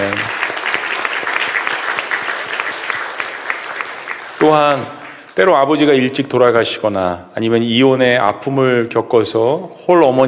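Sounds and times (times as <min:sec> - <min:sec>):
audience applauding warmly: 0:00.0 - 0:05.5
speech: 0:04.5 - 0:10.2.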